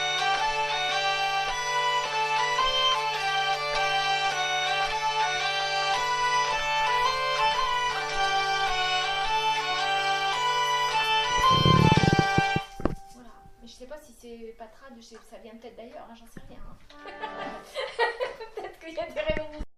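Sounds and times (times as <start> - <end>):
countermelody: 0.0 - 13.2
laughter: 16.9 - 18.9.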